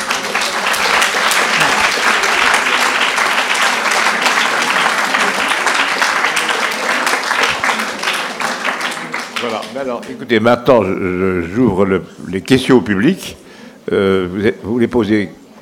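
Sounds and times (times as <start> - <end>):
audience applause: 0.0 - 10.2
speech: 9.8 - 15.4.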